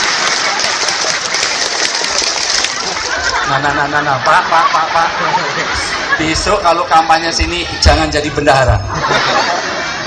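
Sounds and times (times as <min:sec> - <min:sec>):
crowd clapping a scout clap chant: 0:00.0 - 0:03.4
laughter: 0:00.0 - 0:10.0
speech: 0:03.5 - 0:09.7.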